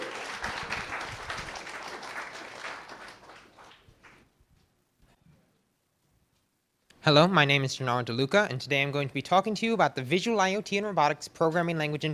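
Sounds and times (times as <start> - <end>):
audience applause: 0.0 - 4.2
speech: 7.0 - 12.1.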